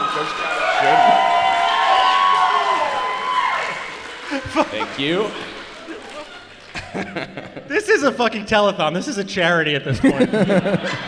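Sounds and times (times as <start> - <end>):
crowd cheering and whooping: 0.0 - 6.7
crowd applause: 0.0 - 7.7
laughter: 4.0 - 8.2, 9.9 - 11.0
speech: 4.6 - 5.6, 7.0 - 11.0.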